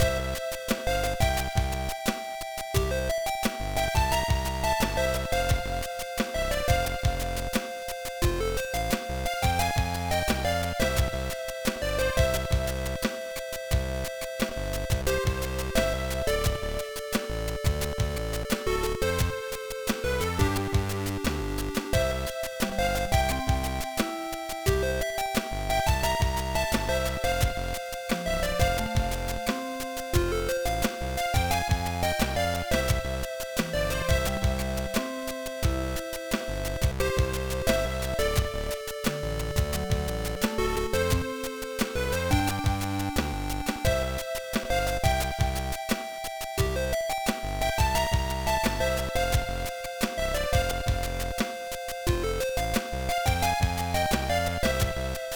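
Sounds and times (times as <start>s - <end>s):
background music: 0.0s - 55.3s.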